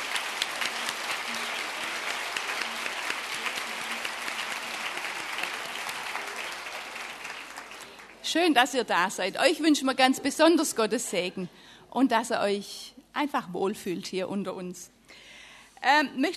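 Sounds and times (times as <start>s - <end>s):
audience applause: 0.0s - 8.3s
speech: 8.3s - 15.0s, 15.8s - 16.3s.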